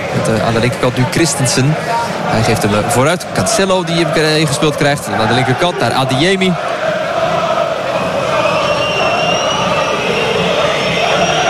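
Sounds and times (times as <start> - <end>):
steady roar of fans: 0.0 - 11.4
speech: 0.3 - 7.3
stadium crowd whistling from home stands: 1.8 - 11.4.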